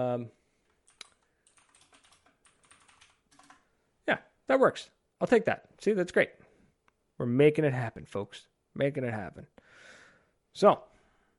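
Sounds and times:
speech: 0.0s - 0.4s, 4.1s - 6.4s, 7.2s - 9.6s, 10.6s - 10.9s
typing on a loud computer keyboard: 0.9s - 3.6s.

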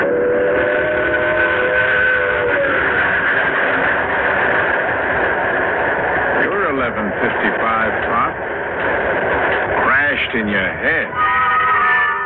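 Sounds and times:
train whistle: 0.0s - 3.8s, 11.0s - 12.2s
train arriving with a mechanical roar: 0.0s - 12.2s.

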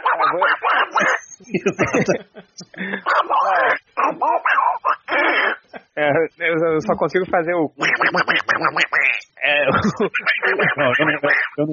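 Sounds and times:
voice imitating a cartoon duck: 0.0s - 1.4s, 3.1s - 5.7s, 7.8s - 11.6s
snickering laughter: 0.0s - 6.1s, 7.9s - 11.6s
speech: 0.2s - 3.7s, 6.8s - 11.7s.

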